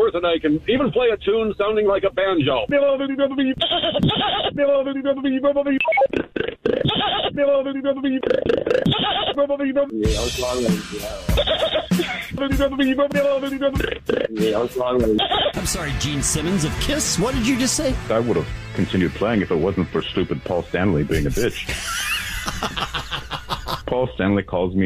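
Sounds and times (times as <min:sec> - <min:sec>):
speech: 0:00.1 - 0:23.2, 0:23.9 - 0:24.8
laughter: 0:03.0 - 0:05.6, 0:06.8 - 0:08.2, 0:11.2 - 0:14.0, 0:15.2 - 0:15.8, 0:20.9 - 0:24.0
voice imitating a goat: 0:13.8 - 0:14.6.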